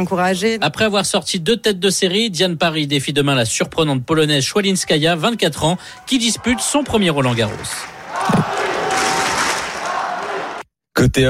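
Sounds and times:
speech: 0.0 - 8.4, 11.0 - 11.2
Paris supporters at Roland-Garros cheering at PSG's Champions League win: 5.0 - 10.6.

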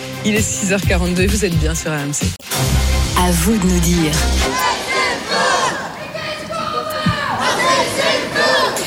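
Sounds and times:
speech: 0.3 - 4.6
pro-Palestinian students shouting and chanting at the Sorbonne in Paris: 4.2 - 8.8.

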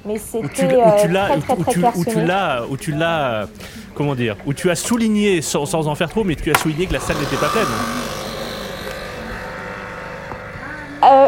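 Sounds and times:
speech: 0.0 - 8.1
laughter: 0.4 - 3.0
coffee machine making coffee: 6.6 - 11.0.

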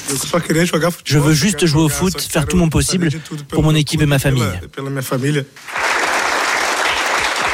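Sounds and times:
speech: 0.3 - 5.9
journalists applauding in a press room: 5.6 - 7.5.

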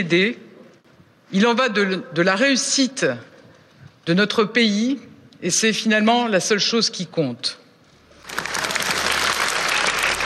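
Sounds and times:
speech: 0.0 - 0.4, 1.3 - 3.3, 4.0 - 7.6
crowd applause after farewell speech: 8.2 - 10.2.

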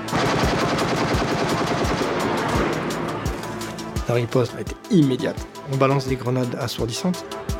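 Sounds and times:
automatic gunfire: 0.1 - 2.8
speech: 4.1 - 7.5.

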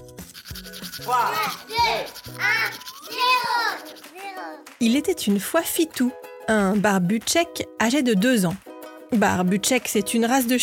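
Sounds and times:
toothbrush scrubbing teeth: 0.0 - 4.6
speech: 1.0 - 10.6.

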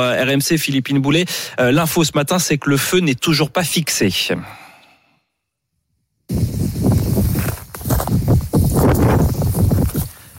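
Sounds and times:
speech: 0.0 - 4.6
wind blowing: 6.3 - 10.3.

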